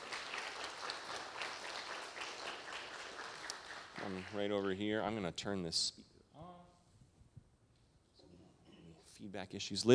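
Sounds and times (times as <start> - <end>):
audience applause: 0.0 - 4.5
speech: 4.1 - 6.1, 9.3 - 9.9.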